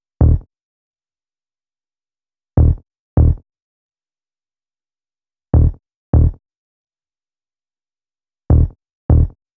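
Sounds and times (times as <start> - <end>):
synth bass: 0.2 - 0.4, 2.6 - 3.4, 5.6 - 6.4, 8.5 - 9.3.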